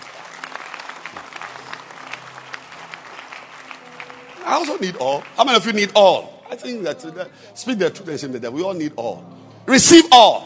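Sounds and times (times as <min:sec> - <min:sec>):
audience clapping hands: 0:00.0 - 0:06.3
speech: 0:04.5 - 0:10.4.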